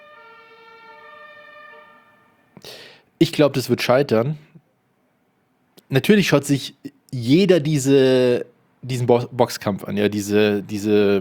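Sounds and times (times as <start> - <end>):
fire engine siren passing by: 0.0 - 2.6
speech: 2.6 - 4.5, 5.9 - 11.2.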